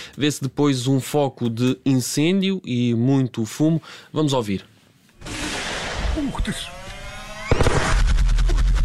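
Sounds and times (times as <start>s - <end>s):
speech: 0.2s - 5.4s, 6.2s - 6.8s
tank gun blast in combat: 5.2s - 8.7s
rapid automatic firing in combat: 7.4s - 8.6s.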